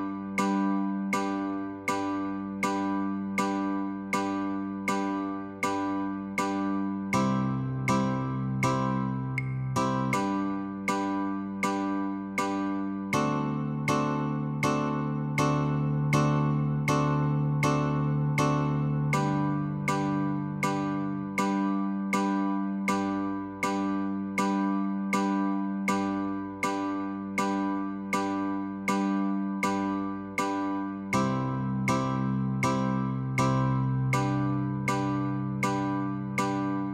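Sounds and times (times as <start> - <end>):
Christmas song chords on guitar: 0.0 - 36.9.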